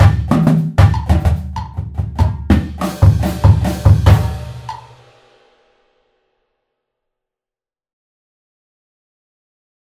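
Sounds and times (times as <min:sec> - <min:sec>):
fluid drum flams: 0:00.0 - 0:05.6.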